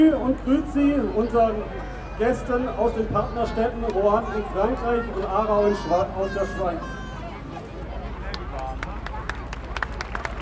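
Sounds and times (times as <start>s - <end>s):
speech: 0.0s - 7.0s
audience applause: 8.3s - 10.4s.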